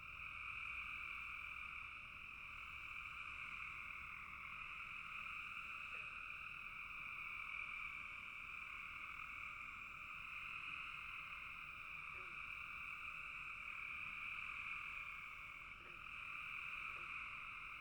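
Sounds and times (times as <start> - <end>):
frogs calling in trilling chorus: 0.0 - 17.7.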